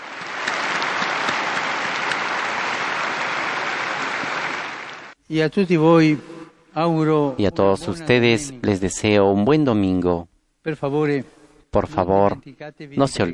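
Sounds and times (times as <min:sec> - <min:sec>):
audience applause: 0:00.0 - 0:05.2
speech: 0:05.3 - 0:13.3.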